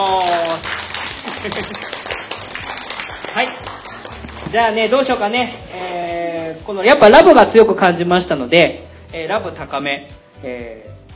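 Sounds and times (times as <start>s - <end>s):
speech: 0.0s - 2.0s, 3.4s - 3.8s, 4.5s - 11.0s
audience applause: 0.0s - 4.7s
laughter: 1.1s - 2.2s.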